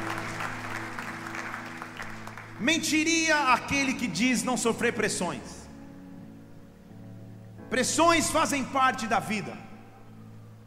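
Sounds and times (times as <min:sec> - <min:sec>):
audience applauding: 0:00.0 - 0:02.9
speech: 0:02.6 - 0:05.6, 0:07.7 - 0:09.7.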